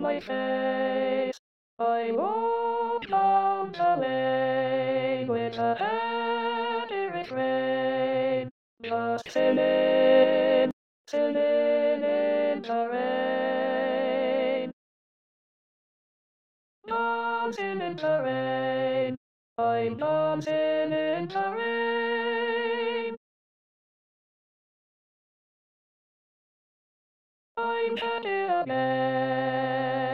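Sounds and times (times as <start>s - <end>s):
alto voice singing in an SATB choir part: 0.0s - 14.7s, 16.9s - 23.2s, 27.6s - 30.1s.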